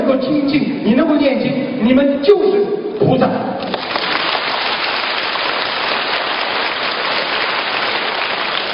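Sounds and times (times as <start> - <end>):
speech: 0.1 - 3.5
audience applause: 3.7 - 8.7.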